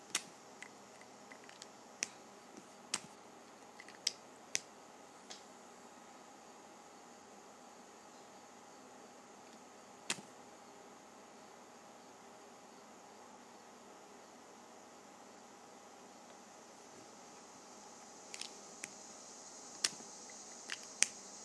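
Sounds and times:
faint high whine: 0:00.0 - 0:21.4
steady soft hiss: 0:00.0 - 0:21.4
Sharpie caps pulled off with clicks and snaps: 0:00.1 - 0:02.2, 0:03.7 - 0:04.7, 0:18.3 - 0:18.6, 0:19.8 - 0:20.0, 0:20.6 - 0:21.2.

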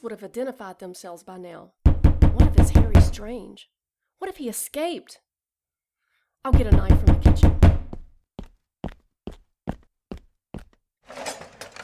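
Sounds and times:
speech: 0:00.0 - 0:05.2, 0:06.4 - 0:07.6
knocking on a door: 0:01.9 - 0:03.2, 0:06.5 - 0:08.1.

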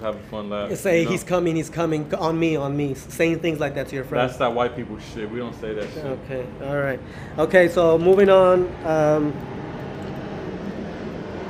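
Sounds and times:
speech: 0:00.0 - 0:09.6
airplane flying over near an airport: 0:08.4 - 0:11.4.

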